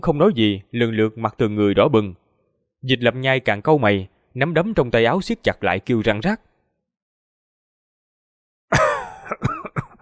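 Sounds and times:
speech: 0.0s - 2.2s, 2.8s - 6.5s
harsh coughs: 8.7s - 10.0s.

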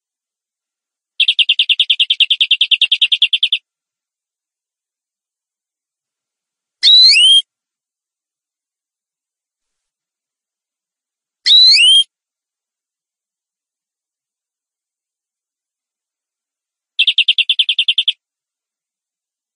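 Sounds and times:
canary song: 1.2s - 3.7s, 6.8s - 7.5s, 11.5s - 12.1s, 17.0s - 18.3s.

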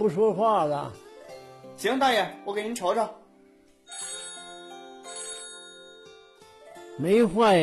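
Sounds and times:
speech: 0.0s - 1.0s, 1.8s - 3.2s, 7.0s - 7.6s
mobile phone ringtone with bright electronic chiming melody: 3.8s - 6.8s.

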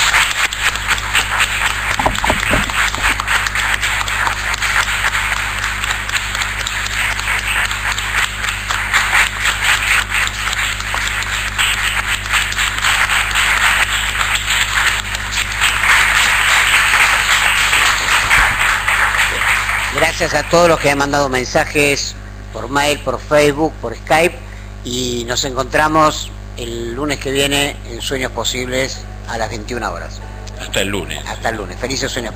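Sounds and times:
audience applause: 0.0s - 21.2s
speech: 20.2s - 32.3s.

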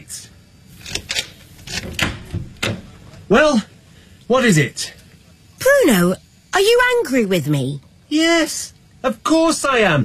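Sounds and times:
door being opened, clunks and clicks: 0.8s - 3.2s
speech: 3.3s - 3.7s, 4.3s - 5.0s, 5.8s - 10.0s.

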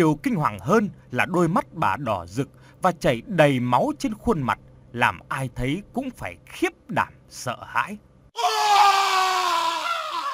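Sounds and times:
speech: 0.0s - 8.7s
man's terrified scream: 8.4s - 10.3s.

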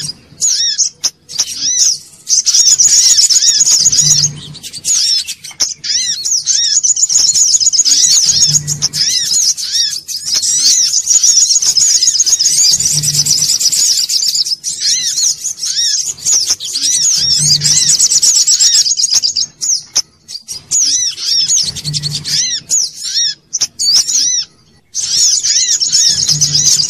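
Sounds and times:
sogok ontong song of dense high chattering and trills: 0.0s - 26.8s
low humming bursts: 1.5s - 18.2s, 21.5s - 22.8s, 25.9s - 26.8s.

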